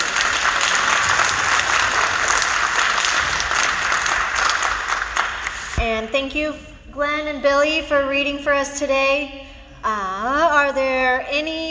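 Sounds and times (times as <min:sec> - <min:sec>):
round of applause: 0:00.0 - 0:05.8
speech: 0:06.1 - 0:11.6.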